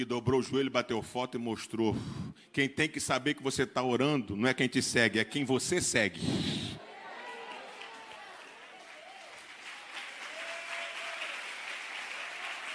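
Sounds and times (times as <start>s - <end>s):
speech: 0.0s - 6.7s
audience applause: 6.9s - 12.7s.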